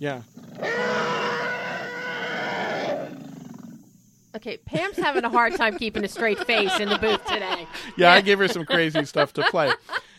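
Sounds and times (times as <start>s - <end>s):
speech: 0.0s - 0.9s, 4.4s - 10.1s
African bull elephant call: 0.4s - 3.6s
laughter: 4.7s - 10.1s.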